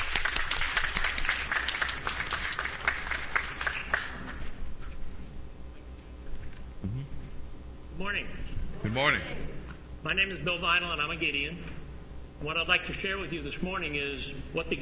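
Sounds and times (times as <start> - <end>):
audience clapping in welcome: 0.0 - 4.5
speech: 8.1 - 11.7, 12.4 - 14.8.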